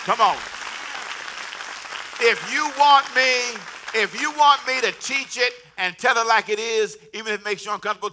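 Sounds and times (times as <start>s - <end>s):
speech: 0.0s - 0.6s, 2.2s - 8.1s
audience hand clapping: 0.0s - 5.6s.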